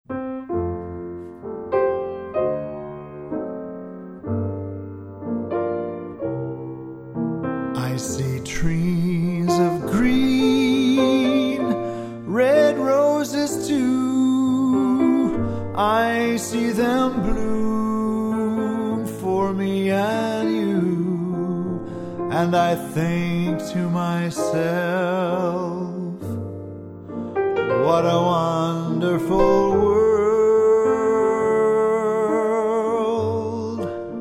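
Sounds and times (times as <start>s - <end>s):
piano: 0.0s - 34.1s.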